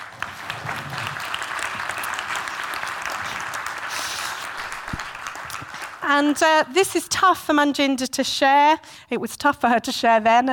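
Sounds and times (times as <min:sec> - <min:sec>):
audience applause welcoming a speaker to the stage: 0:00.0 - 0:06.1
speech: 0:06.1 - 0:10.5.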